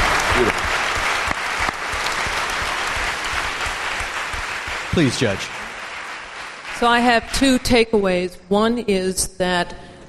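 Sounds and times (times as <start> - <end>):
audience applause: 0.0 - 7.8
speech: 5.0 - 5.6, 6.8 - 9.9.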